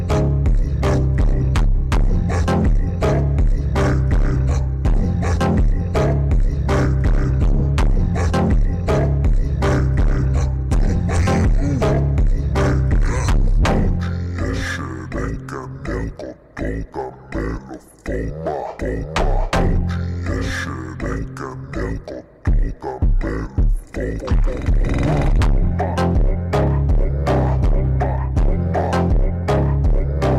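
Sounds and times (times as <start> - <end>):
slowed reverb Brazilian phonk music: 0.0 - 30.3.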